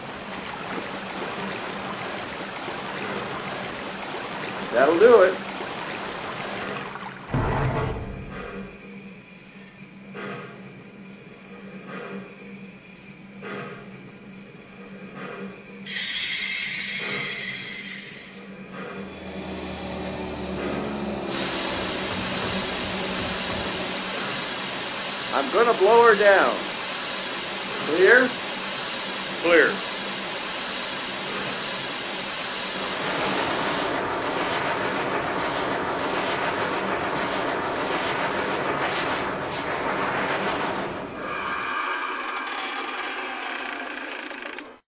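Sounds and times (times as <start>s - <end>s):
trains: 0.0s - 44.8s.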